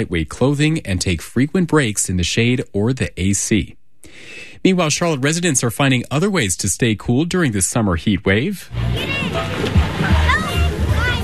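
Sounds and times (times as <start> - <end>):
speech: 0.0 - 10.2
water splashing in an outdoor public swimming pool: 8.7 - 11.2
excited children's voices and shrieks: 8.8 - 11.2.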